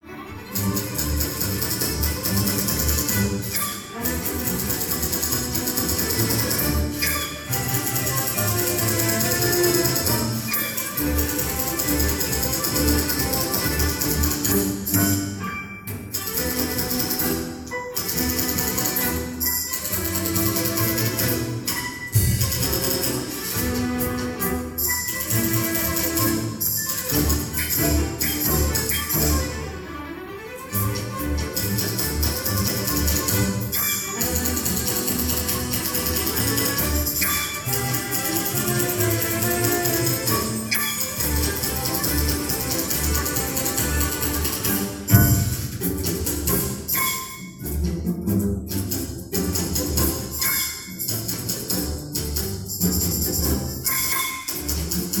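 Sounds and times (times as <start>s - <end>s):
municipal orchestra playing: 0.0s - 55.1s.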